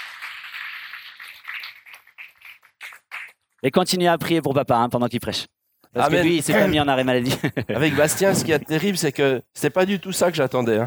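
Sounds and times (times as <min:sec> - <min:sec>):
audience applause: 0:00.0 - 0:03.1
speech: 0:03.6 - 0:10.8
laughter: 0:06.0 - 0:10.8.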